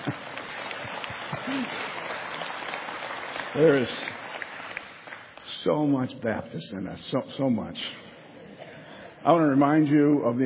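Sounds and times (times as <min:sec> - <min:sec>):
audience clapping: 0:00.0 - 0:05.7
speech: 0:01.5 - 0:01.9, 0:03.6 - 0:04.2, 0:05.6 - 0:08.0, 0:09.2 - 0:10.4.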